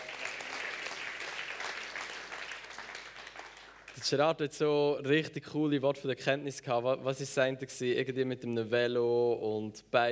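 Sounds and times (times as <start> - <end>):
crowd clapping: 0.0 - 4.1
speech: 4.0 - 10.1.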